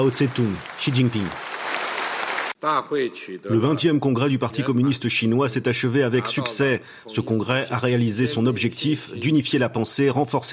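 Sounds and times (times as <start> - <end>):
speech: 0.0 - 1.5, 2.6 - 10.5
congress delegates applauding: 0.0 - 2.6.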